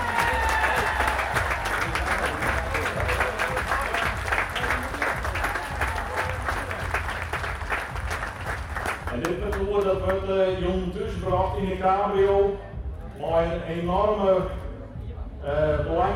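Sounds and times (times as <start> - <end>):
crowd applauding: 0.0 - 10.2
speech: 10.3 - 14.6.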